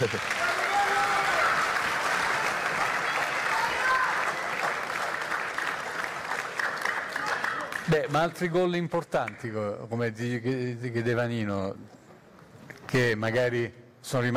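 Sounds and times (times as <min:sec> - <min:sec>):
speech: 0:00.0 - 0:00.6, 0:07.9 - 0:12.0, 0:12.9 - 0:14.3
audience applause on an Italian talk show: 0:00.0 - 0:08.3.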